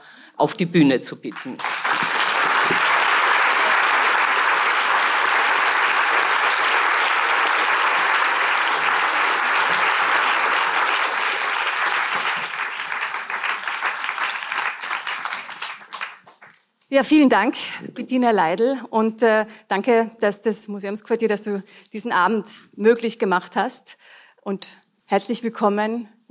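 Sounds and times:
speech: 0.4 - 1.8, 17.0 - 26.2
audience applause: 1.3 - 16.6.

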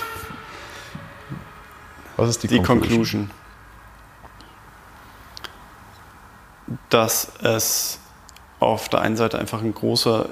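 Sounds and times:
emergency vehicle siren wailing: 0.0 - 3.4
low rumbling traffic: 0.0 - 10.3
soft thumps: 0.3 - 1.6
speech: 2.2 - 3.4, 6.9 - 8.0, 8.6 - 10.3.

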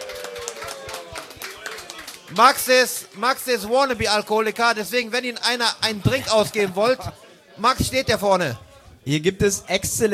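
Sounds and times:
audience applause: 0.0 - 3.2
speech: 2.3 - 10.1.

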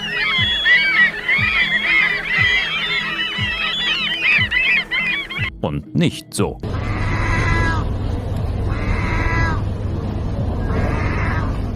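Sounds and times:
seagull calls: 0.0 - 5.6, 6.7 - 7.9, 8.6 - 9.6, 10.6 - 11.7
speech: 5.6 - 6.7.

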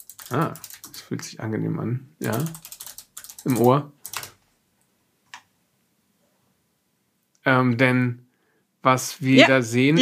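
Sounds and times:
typing on a mechanical keyboard: 0.0 - 1.0, 2.2 - 4.4
speech: 0.3 - 2.7, 3.4 - 4.0, 7.4 - 8.2, 8.8 - 9.9.

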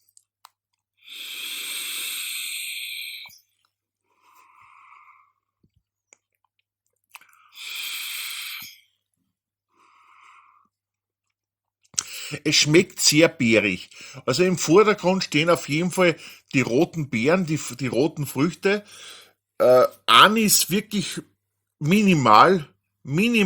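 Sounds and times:
deep drag from Juul Crown 3 e-cigarette: 1.1 - 3.3
speech: 12.3 - 23.4.

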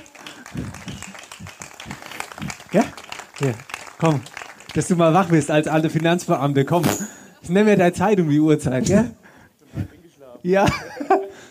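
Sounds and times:
laughter: 0.0 - 3.1, 10.6 - 11.4
short small group applause: 0.0 - 6.4
speech: 2.7 - 9.2, 10.4 - 10.8.

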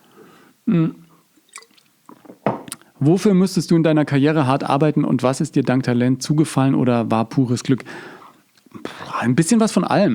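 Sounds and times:
speech: 0.7 - 1.0, 3.0 - 8.2, 8.8 - 10.1
person gulping a sip of a drink: 0.8 - 2.8.

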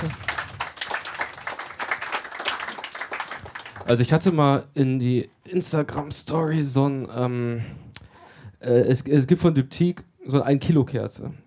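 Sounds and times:
audience applause: 0.0 - 4.2
speech: 3.9 - 7.9, 8.6 - 11.4.

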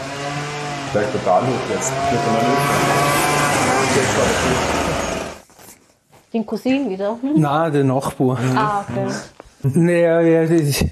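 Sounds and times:
string trimmer running outside: 0.0 - 5.4
speech: 0.9 - 3.3, 3.9 - 5.0, 6.3 - 10.9.

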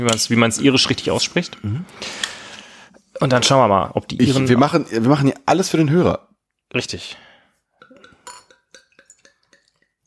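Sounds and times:
speech: 0.0 - 2.4, 3.2 - 7.2
Mac Gargles Irish IPA beer bottle being opened with glassy clinks: 7.8 - 10.0.

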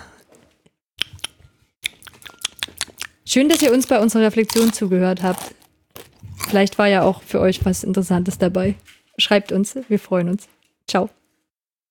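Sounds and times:
two people eating and chewing at the table: 1.0 - 6.8
speech: 3.3 - 5.6, 6.5 - 11.2.

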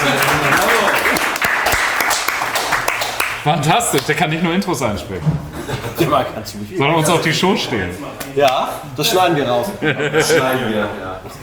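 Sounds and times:
laughter: 0.0 - 1.5, 5.2 - 6.4, 9.0 - 11.4
audience applause: 0.0 - 4.2
speech: 3.4 - 11.4.

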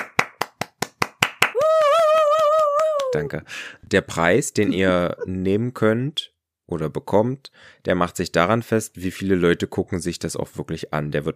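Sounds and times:
applause: 0.0 - 3.3
speech: 3.1 - 11.3.

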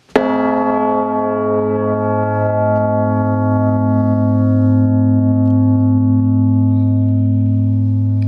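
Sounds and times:
newly cast bell ringing with long resonance: 0.0 - 8.2.

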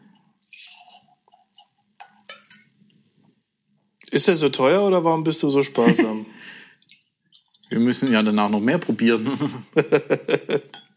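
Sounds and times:
liquid pouring from a barrel tap into a glass: 0.0 - 2.7, 6.4 - 8.7
drips and gurgles: 0.0 - 2.8, 6.4 - 8.5
speech: 4.1 - 6.6, 7.7 - 10.8
laughter: 5.8 - 6.3, 9.2 - 10.8.

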